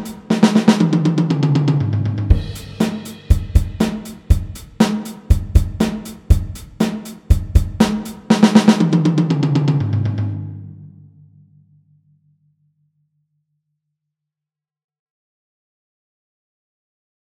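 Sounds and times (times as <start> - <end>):
drum fill: 0.0 - 10.6.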